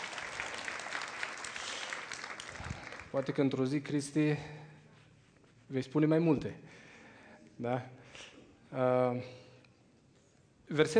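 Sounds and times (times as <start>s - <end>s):
audience applause at a religious gathering: 0.0s - 3.5s
speech: 3.1s - 4.6s, 5.7s - 6.8s, 7.6s - 9.4s, 10.7s - 10.9s.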